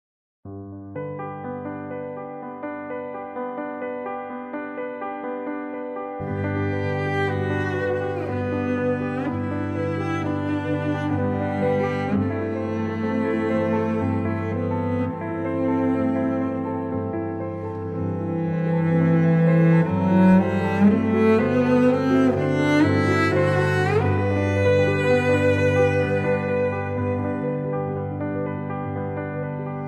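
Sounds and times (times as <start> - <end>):
cello playing: 6.2 - 29.6.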